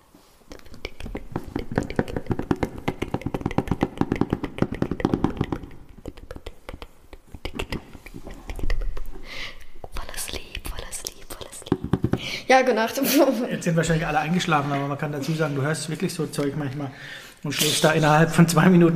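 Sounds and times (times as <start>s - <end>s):
ASMR whispering: 0.5s - 3.3s, 5.5s - 11.8s
ASMR tapping and knocking on objects: 0.9s - 6.9s
speech: 12.5s - 18.9s.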